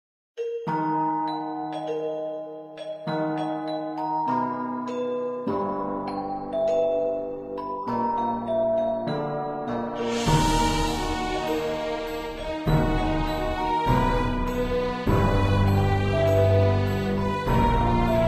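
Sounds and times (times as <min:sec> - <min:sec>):
instrumental national anthem: 0:00.4 - 0:18.2.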